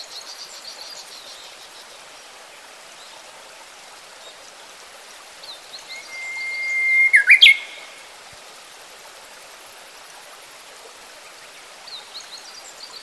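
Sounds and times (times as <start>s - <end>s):
Japanese bush warbler singing: 5.4s - 7.9s.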